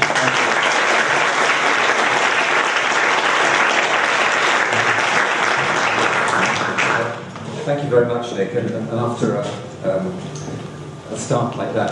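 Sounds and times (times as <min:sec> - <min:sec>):
crowd applauding: 0:00.0 - 0:07.3
speech: 0:07.9 - 0:10.4, 0:11.2 - 0:11.8.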